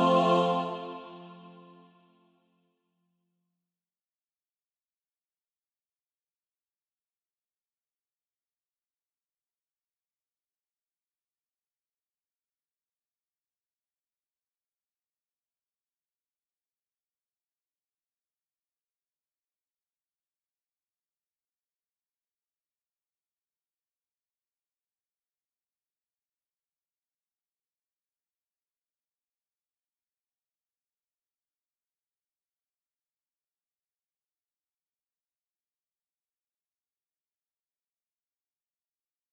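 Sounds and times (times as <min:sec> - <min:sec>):
mixed practice music: 0:00.0 - 0:01.8.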